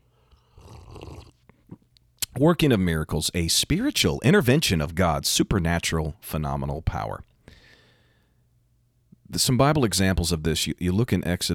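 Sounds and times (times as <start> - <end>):
person sipping coffee: 0.2 - 2.4
speech: 2.4 - 7.3, 9.3 - 11.5.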